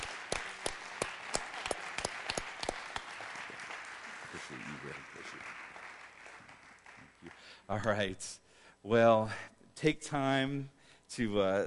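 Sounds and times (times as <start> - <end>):
congregation applause at a church service: 0.0 - 7.9
speech: 7.7 - 11.6.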